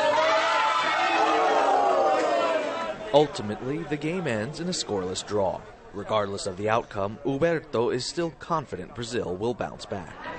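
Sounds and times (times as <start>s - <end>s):
soccer fans crowd roaring and cheering at the match: 0.0s - 5.5s
speech: 3.1s - 10.3s.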